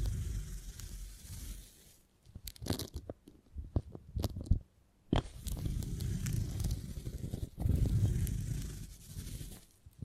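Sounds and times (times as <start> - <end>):
beeswax being handled and squeezed: 0.0 - 2.1, 5.3 - 9.7.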